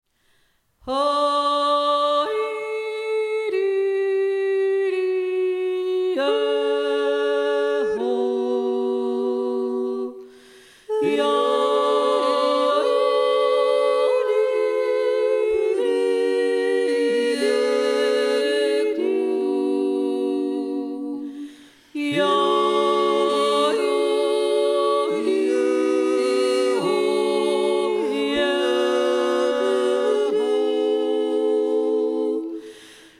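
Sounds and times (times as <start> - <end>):
yodeling: 0.9 - 10.3, 10.9 - 32.7.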